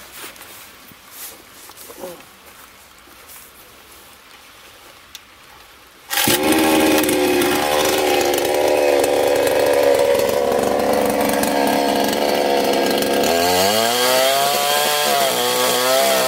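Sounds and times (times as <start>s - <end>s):
cheap Chinese saw cutting thick tree trunk: 6.1s - 16.2s.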